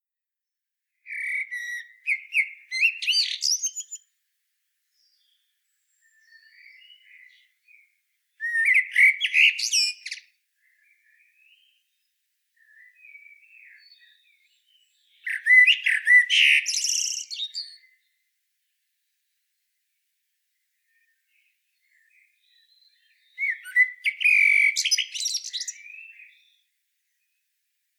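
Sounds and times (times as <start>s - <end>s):
Eurasian blackbird singing: 1.1s - 4.1s, 4.9s - 7.8s, 8.4s - 12.0s, 12.6s - 18.1s, 20.9s - 26.6s.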